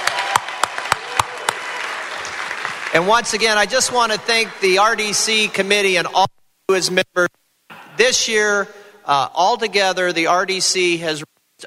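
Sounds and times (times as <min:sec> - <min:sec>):
audience round of applause: 0:00.0 - 0:04.8
speech: 0:02.9 - 0:07.4, 0:08.0 - 0:11.6.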